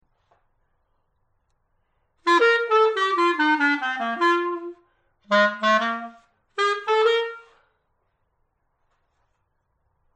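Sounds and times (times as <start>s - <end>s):
clarinet: 2.2s - 7.7s.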